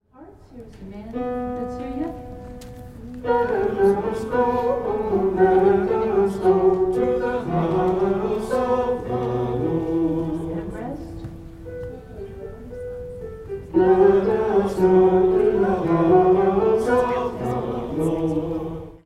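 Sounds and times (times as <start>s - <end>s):
men singing a refrain: 3.3s - 10.8s, 13.8s - 19.0s.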